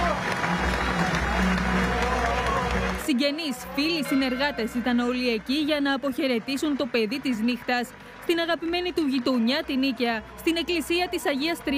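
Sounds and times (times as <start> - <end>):
mourners applauding at a singer's funeral at a church in Nikaia, Greece: 0.0 - 11.7
speech: 3.1 - 11.7.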